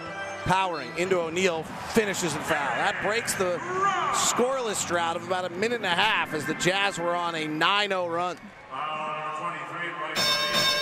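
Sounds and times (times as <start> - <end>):
speech: 0.4 - 9.0
bell marking a 30-point game: 10.2 - 10.8.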